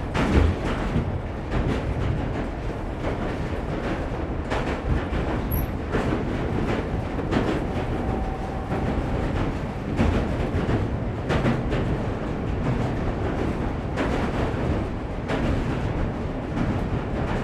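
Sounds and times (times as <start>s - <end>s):
London subway doors closing: 0.0s - 17.4s
passengers boarding London subway train: 0.0s - 17.4s.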